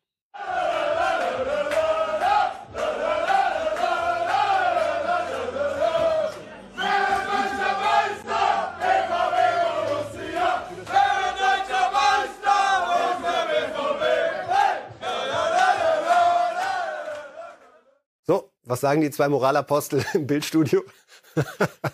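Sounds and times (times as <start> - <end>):
team of men singing a chant in a locker room: 0.4 - 17.8
laughter: 6.8 - 8.2, 21.1 - 21.9
speech: 18.8 - 21.9.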